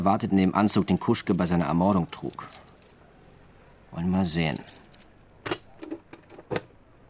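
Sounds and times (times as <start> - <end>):
speech: 0.0 - 2.7, 3.9 - 4.8
bunch of keys jangling: 0.8 - 3.0, 4.5 - 5.4.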